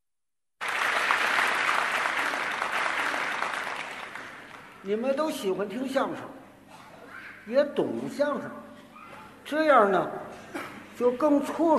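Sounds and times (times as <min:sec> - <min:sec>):
audience applause: 0:00.6 - 0:04.8
speech: 0:04.8 - 0:06.4, 0:07.4 - 0:08.6, 0:09.5 - 0:11.7.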